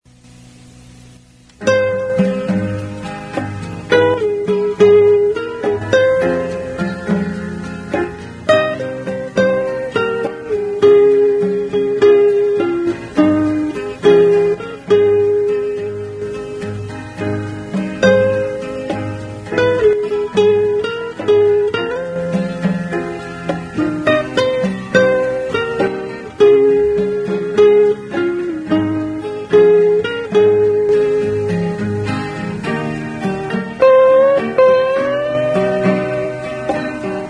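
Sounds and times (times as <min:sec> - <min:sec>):
instrumental music: 0:00.1 - 0:37.2.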